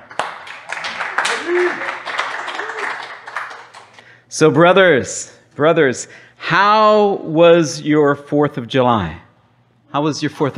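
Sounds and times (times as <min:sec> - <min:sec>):
crowd clapping to welcome a speaker at a church gathering: 0:00.0 - 0:04.1
people calling out and whooping: 0:01.1 - 0:03.1
speech: 0:01.5 - 0:01.9, 0:04.4 - 0:09.2, 0:09.9 - 0:10.5.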